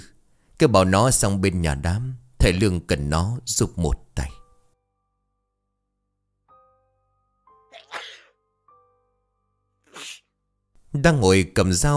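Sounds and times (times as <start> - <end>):
speech: 0.6 - 4.4, 10.9 - 11.9
person sneezing: 7.7 - 8.4, 9.9 - 10.3.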